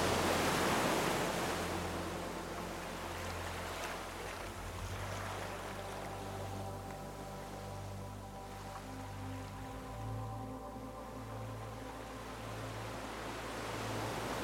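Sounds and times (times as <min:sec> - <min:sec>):
ocean surf: 0:00.0 - 0:10.0, 0:11.8 - 0:14.4
calm low sustained musical tone: 0:00.0 - 0:14.4.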